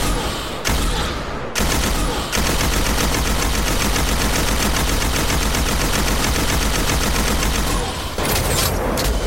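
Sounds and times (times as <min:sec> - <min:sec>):
ARC heavy machine gun firing: 0:00.0 - 0:09.1.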